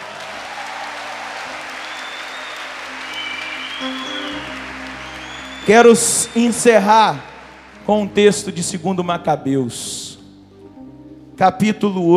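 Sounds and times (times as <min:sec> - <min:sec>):
audience applause: 0:00.0 - 0:08.6
speech: 0:03.8 - 0:04.2, 0:05.7 - 0:07.3, 0:07.9 - 0:10.1, 0:11.4 - 0:12.1.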